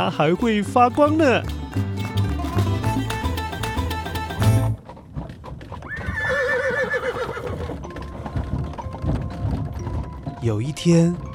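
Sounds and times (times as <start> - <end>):
speech: 0.0 - 1.9, 10.5 - 11.3
celestial horses' hooves clip-clopping: 0.0 - 11.3
Sól's celestial horses whinnying: 5.5 - 8.7.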